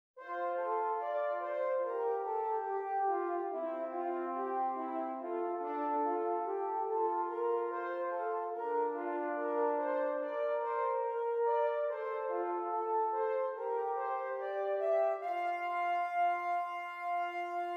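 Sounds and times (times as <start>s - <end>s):
two-voice counterpoint exercises: 0.2s - 17.7s.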